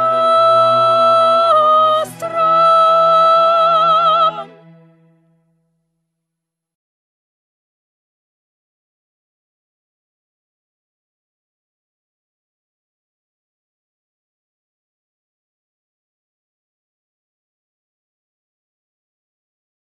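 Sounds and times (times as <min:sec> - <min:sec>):
soprano singing: 0:00.0 - 0:05.0.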